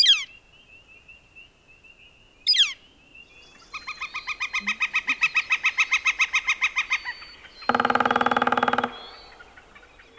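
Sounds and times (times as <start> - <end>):
northern flicker calling: 3.5 - 10.1.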